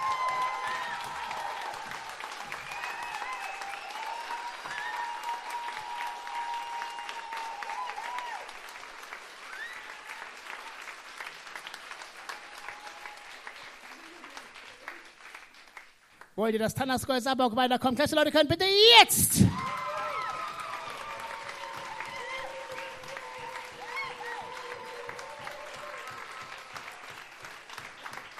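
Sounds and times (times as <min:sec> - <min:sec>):
whistles and cheers: 0:00.0 - 0:08.6, 0:09.4 - 0:11.0, 0:12.2 - 0:13.4, 0:19.5 - 0:28.3
large audience clapping to vote: 0:00.0 - 0:16.4, 0:19.4 - 0:28.3
speech: 0:16.4 - 0:19.7.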